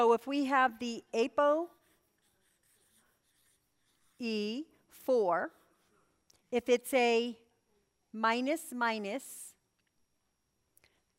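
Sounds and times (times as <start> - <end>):
speech: 0.0 - 1.8, 4.2 - 5.6, 6.5 - 7.4, 8.1 - 9.5
pen scratching on a board: 1.4 - 4.6, 5.3 - 6.0.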